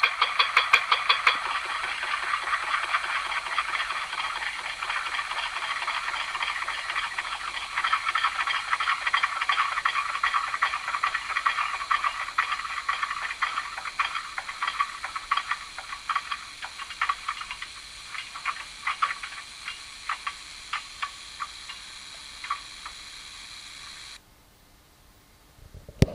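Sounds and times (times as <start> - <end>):
small narrow-gauge field railway locomotive: 0.0 - 24.2.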